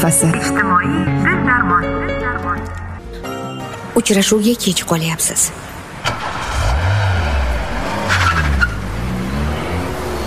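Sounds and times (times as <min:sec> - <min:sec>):
speech: 0:00.0 - 0:03.4, 0:04.0 - 0:05.8
car tyres skidding and squealing: 0:05.7 - 0:10.2
speeding car engine revving: 0:06.0 - 0:10.2.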